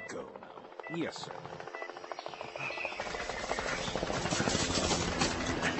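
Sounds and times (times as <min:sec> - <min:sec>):
speech: 0:00.2 - 0:01.7
rapid gunfire in a drama scene: 0:02.9 - 0:05.7.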